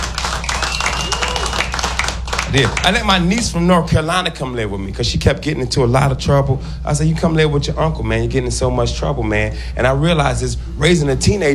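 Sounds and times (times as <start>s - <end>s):
crowd noise: 0.0s - 3.3s
audience clapping at a stand-up comedy show: 0.0s - 3.4s
speech: 2.5s - 11.5s.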